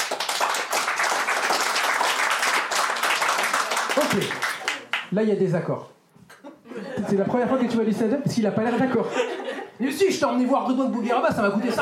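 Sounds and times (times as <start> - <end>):
audience applause: 0.0 - 5.1
speech: 4.0 - 4.5, 5.1 - 5.9, 7.0 - 11.8
laughter: 6.4 - 9.8, 11.1 - 11.8.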